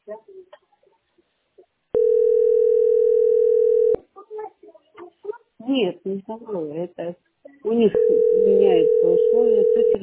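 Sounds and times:
telephone dial tone while calling: 2.0s - 4.0s, 8.0s - 10.0s
speech: 5.8s - 10.0s.

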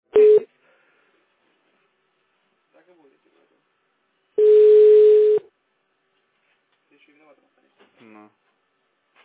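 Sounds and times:
telephone ringback tone: 0.1s - 0.4s, 4.4s - 5.4s
speech: 7.0s - 8.5s.

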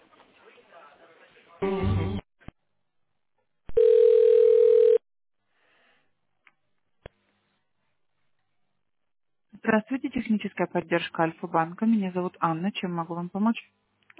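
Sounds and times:
telephone line tone while a support call is transferred: 3.7s - 5.0s
speech: 9.8s - 14.1s.

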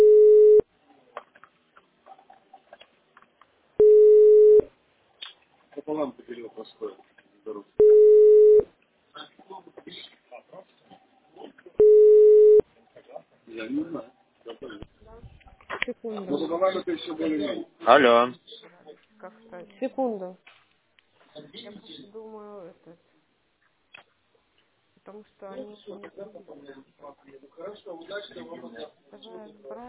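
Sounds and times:
telephone ringback beeps while a phone call is being placed: 0.0s - 0.6s, 3.8s - 4.7s, 7.8s - 8.6s, 11.8s - 12.6s
speech: 16.8s - 18.4s, 19.8s - 20.4s, 25.1s - 29.8s.

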